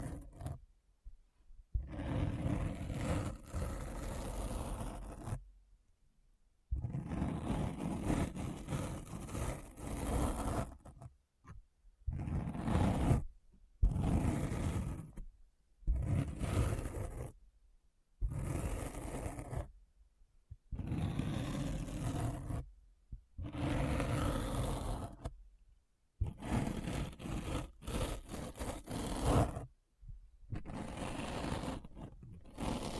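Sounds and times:
deep gritty scratching: 1.8 - 5.4, 6.8 - 11.1, 12.1 - 13.2, 13.8 - 15.2, 15.9 - 17.4, 18.2 - 19.7, 20.7 - 22.7, 23.4 - 25.3, 26.2 - 29.7, 30.5 - 32.9.

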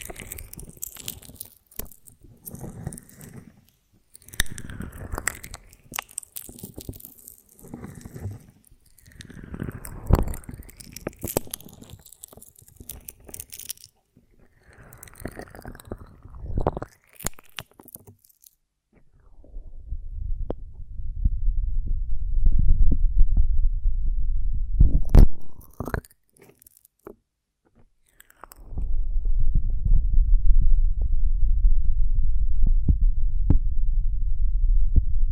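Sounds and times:
honeycomb on branch crunching and tearing: 0.0 - 18.6, 25.4 - 27.1, 28.1 - 28.7
low rumble: 19.0 - 25.4, 28.7 - 35.3.

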